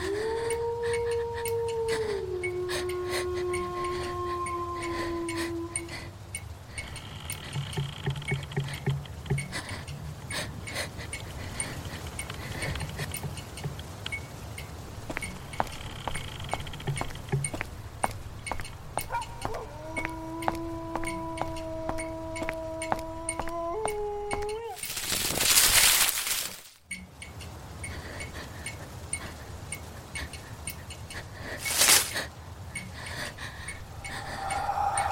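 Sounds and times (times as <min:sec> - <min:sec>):
low droning moans: 0:00.0 - 0:09.5, 0:19.2 - 0:24.6, 0:33.7 - 0:35.0
faint crackling ticks: 0:00.0 - 0:35.0.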